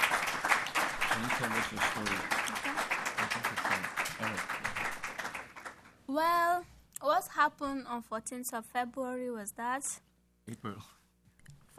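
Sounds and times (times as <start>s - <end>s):
crowd applauding: 0.0s - 6.0s
speech: 1.2s - 4.9s, 6.1s - 11.0s.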